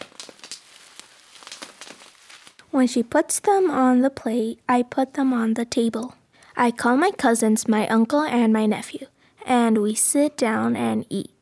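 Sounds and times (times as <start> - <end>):
food sizzling on a hot plate: 0.0 - 2.6
speech: 2.7 - 11.3.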